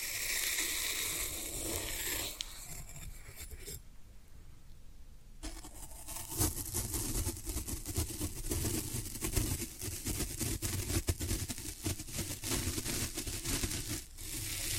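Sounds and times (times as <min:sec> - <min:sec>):
floral foam hissing scrape: 0:00.0 - 0:03.8, 0:09.1 - 0:14.7
floral foam crackling crunch: 0:06.2 - 0:14.7.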